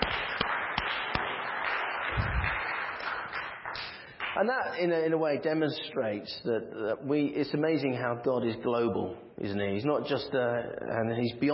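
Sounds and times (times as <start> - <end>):
audience clapping: 0.0 - 4.7
speech: 4.4 - 11.5.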